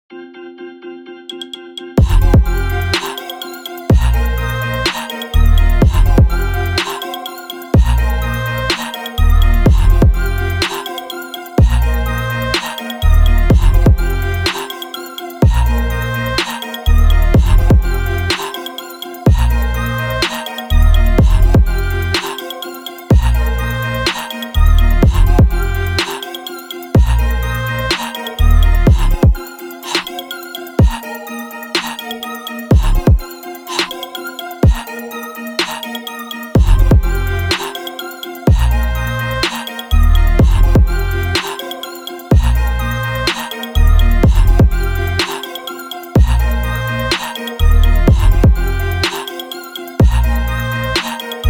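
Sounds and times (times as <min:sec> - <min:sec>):
afro trap fusion beats: 0:01.3 - 0:51.4.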